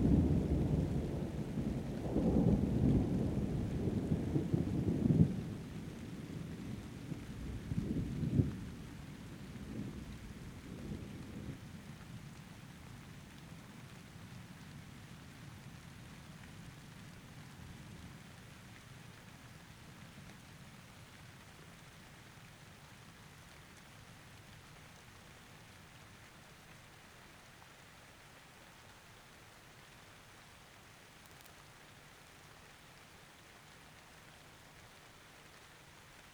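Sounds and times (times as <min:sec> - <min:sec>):
thunder: 0:00.0 - 0:08.8
rain: 0:00.0 - 0:36.3.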